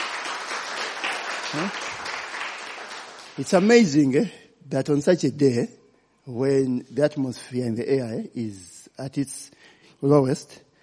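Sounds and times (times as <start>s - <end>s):
audience hand clapping: 0.0s - 4.0s
speech: 1.5s - 2.0s, 3.4s - 10.6s.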